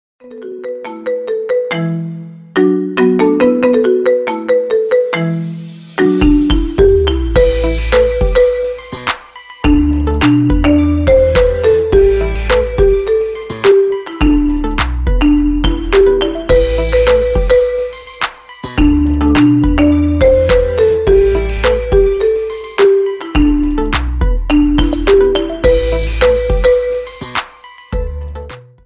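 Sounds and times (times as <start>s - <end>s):
marimba ringtone remix: 0.2s - 28.5s.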